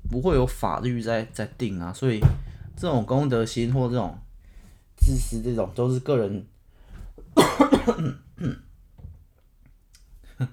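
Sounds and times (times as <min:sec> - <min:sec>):
speech: 0:00.1 - 0:04.2, 0:05.0 - 0:06.5, 0:07.4 - 0:08.6
quiet breathing: 0:04.3 - 0:05.0, 0:06.6 - 0:07.3
person with an irritated throat coughing: 0:07.4 - 0:08.7.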